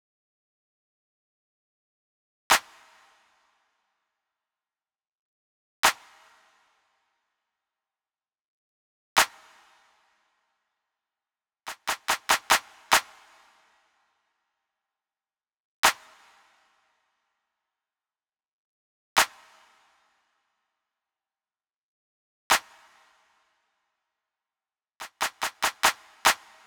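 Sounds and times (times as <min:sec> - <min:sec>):
hand clap: 0:11.7 - 0:13.5, 0:15.8 - 0:16.2, 0:22.5 - 0:22.8, 0:25.0 - 0:26.6
smooth RnB drum tracks: 0:11.8 - 0:12.6, 0:25.0 - 0:26.4.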